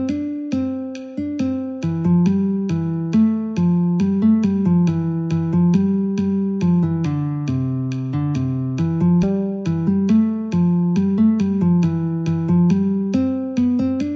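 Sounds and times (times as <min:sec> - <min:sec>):
guitar in C: 0:00.0 - 0:14.1
metronome at 69: 0:00.0 - 0:14.1.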